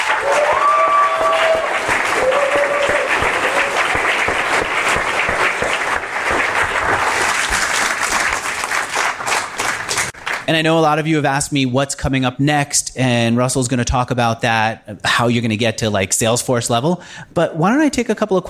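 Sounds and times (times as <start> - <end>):
whistles and cheers: 0.0 - 4.5
audience applause: 0.0 - 10.5
speech: 10.5 - 18.4.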